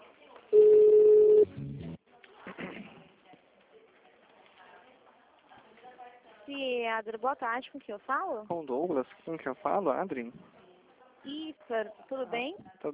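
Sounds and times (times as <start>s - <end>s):
telephone ring tone on a call being transferred: 0.6s - 1.5s
speech: 6.6s - 10.5s, 11.2s - 12.9s.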